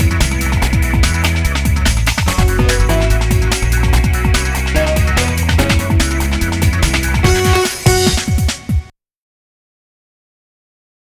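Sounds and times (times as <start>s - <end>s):
robotic electronic music: 0.0s - 8.9s.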